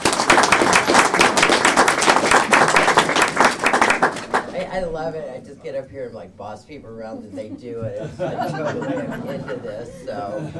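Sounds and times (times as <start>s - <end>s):
audience clapping: 0.0s - 4.7s
speech: 4.8s - 10.5s
laughter: 7.3s - 10.5s.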